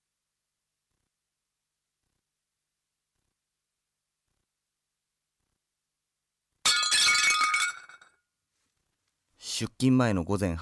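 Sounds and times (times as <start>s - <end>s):
plate breaking: 6.6s - 8.2s
speech: 9.6s - 10.5s.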